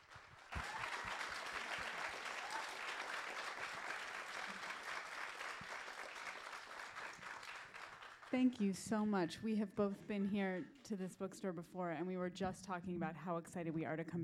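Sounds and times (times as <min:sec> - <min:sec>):
audience applause welcoming two authors at a Harrisburg bookstore event: 0:00.0 - 0:08.6
speech: 0:08.3 - 0:14.2.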